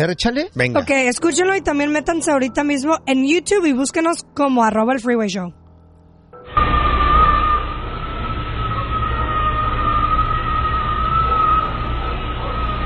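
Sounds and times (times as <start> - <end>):
speech: 0.0 - 5.6
prolonged wailing scream from video recording: 6.4 - 12.8.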